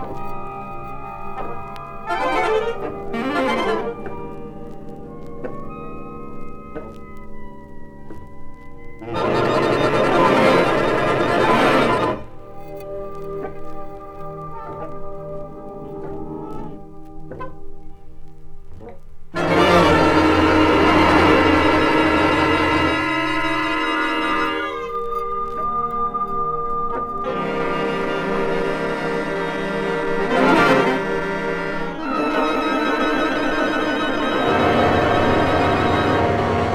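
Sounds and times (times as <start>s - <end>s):
saxophone orchestra: 2.0s - 4.4s, 9.0s - 12.3s, 19.4s - 25.8s, 27.0s - 36.7s.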